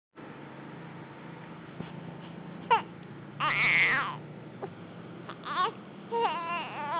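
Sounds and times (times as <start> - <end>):
hungry baby girl crying: 2.7 - 4.2, 5.3 - 6.9.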